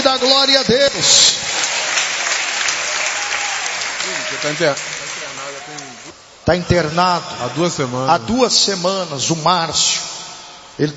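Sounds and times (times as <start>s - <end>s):
audience applauding: 0.0s - 6.2s
speech: 0.2s - 1.7s, 4.1s - 5.0s, 6.4s - 10.0s, 10.8s - 10.9s.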